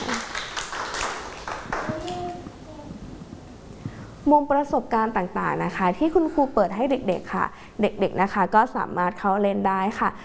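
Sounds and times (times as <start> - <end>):
children clapping hands: 0.0 - 2.4
speech: 4.2 - 10.2.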